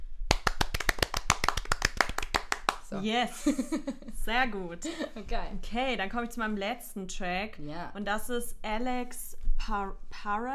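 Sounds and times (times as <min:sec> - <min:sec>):
hand clapping: 0:00.2 - 0:02.9
speech: 0:02.9 - 0:10.5
laughter: 0:03.3 - 0:04.2.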